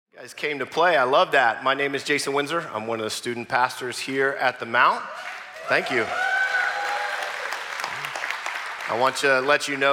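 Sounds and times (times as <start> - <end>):
speech: 0.2 - 6.3, 8.9 - 9.9
audience slow clap turning into applause: 5.2 - 9.9.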